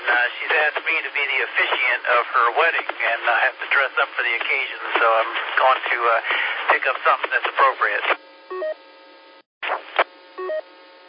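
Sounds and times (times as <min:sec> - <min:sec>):
speech: 0:00.2 - 0:08.3
electronic telephone dialing beeps: 0:10.4 - 0:10.6.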